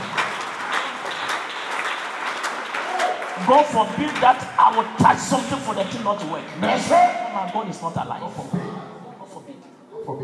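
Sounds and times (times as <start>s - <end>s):
audience clapping: 0.0s - 7.8s
speech: 3.4s - 8.7s, 10.1s - 10.2s.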